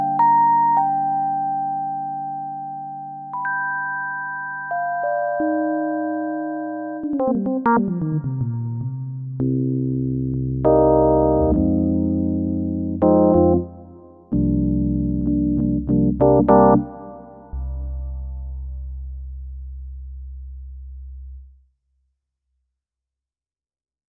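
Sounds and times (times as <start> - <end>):
electric piano: 0.0 - 18.9.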